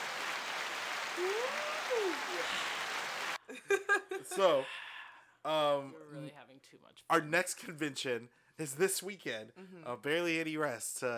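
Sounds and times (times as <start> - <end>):
canned applause button sound effect: 0.0 - 3.4
rising and falling whoops: 1.2 - 3.0
speech: 4.3 - 4.8, 5.4 - 11.1.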